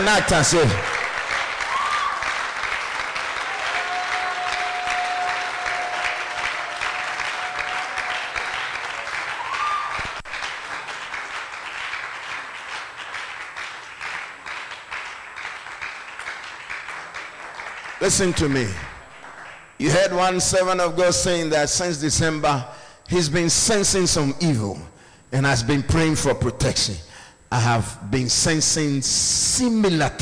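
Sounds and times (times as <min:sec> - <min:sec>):
speech: 0:00.0 - 0:01.0, 0:18.1 - 0:18.9, 0:19.8 - 0:30.1
audience applauding: 0:00.0 - 0:19.8.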